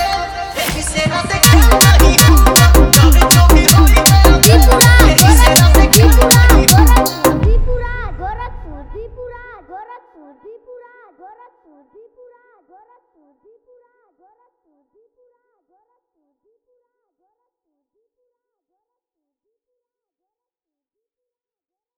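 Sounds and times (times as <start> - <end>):
Bhojpuri DJ remix music: 0.0 - 8.8.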